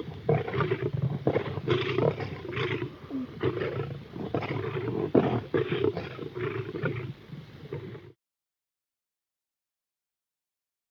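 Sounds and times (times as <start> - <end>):
lions roaring and snarling in a fight: 0.0 - 8.2.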